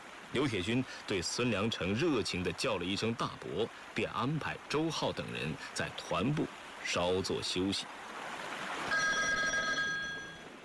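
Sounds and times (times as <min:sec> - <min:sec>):
speech: 0:00.3 - 0:08.0
telephone bell ringing: 0:08.9 - 0:10.5.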